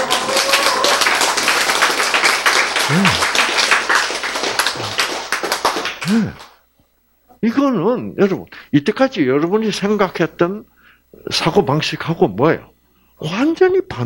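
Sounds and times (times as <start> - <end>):
audience applause: 0.0 - 6.6
speech: 7.4 - 14.0.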